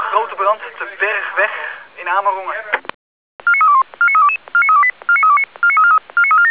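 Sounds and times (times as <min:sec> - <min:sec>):
speech: 0:00.2 - 0:02.9
fire brigade alarm paging tones: 0:03.4 - 0:06.4.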